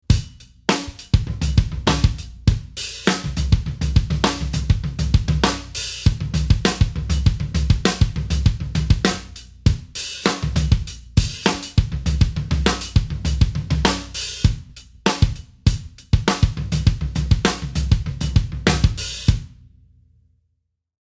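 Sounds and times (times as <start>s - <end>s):
jazz drum kit playing a three-note study: 0.0s - 19.5s.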